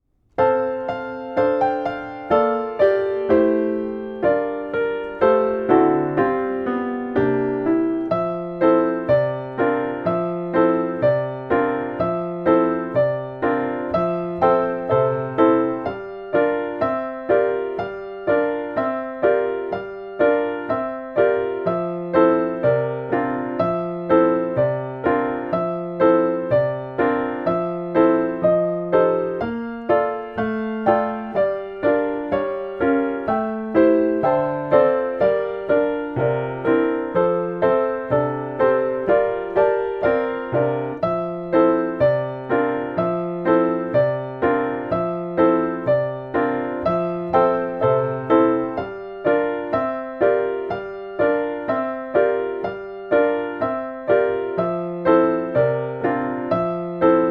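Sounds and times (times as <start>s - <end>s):
piano: 0.0s - 57.2s.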